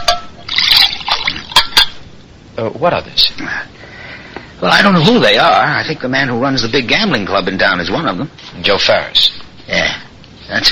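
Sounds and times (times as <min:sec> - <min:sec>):
water being poured: 0:00.0 - 0:02.0
speech: 0:02.6 - 0:03.8, 0:04.6 - 0:10.7.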